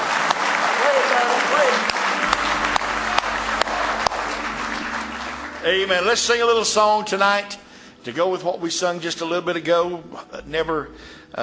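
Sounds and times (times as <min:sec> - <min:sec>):
audience hand clapping: 0:00.0 - 0:07.6
speech: 0:05.6 - 0:11.4.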